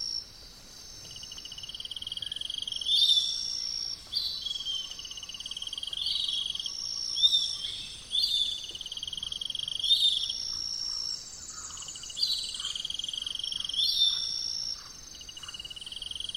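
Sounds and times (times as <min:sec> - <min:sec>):
birds in the rainforest by day at Arenal volcano: 0:00.0 - 0:16.3.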